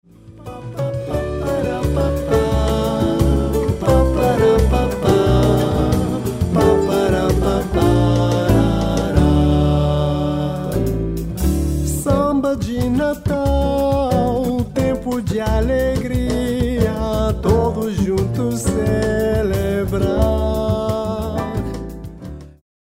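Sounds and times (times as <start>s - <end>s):
Portuguese samba music: 0.0s - 22.6s.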